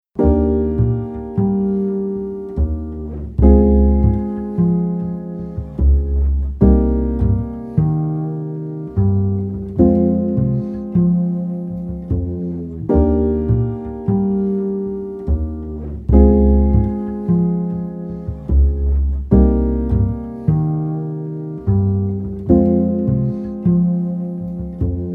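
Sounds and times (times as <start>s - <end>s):
chord progression: 0.2s - 25.1s.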